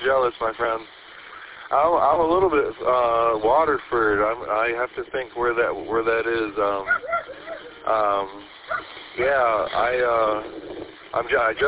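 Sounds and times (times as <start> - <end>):
speech: 0.1 - 1.0, 1.7 - 11.6
dogs barking at another dog down the street: 6.8 - 7.9, 8.6 - 9.0.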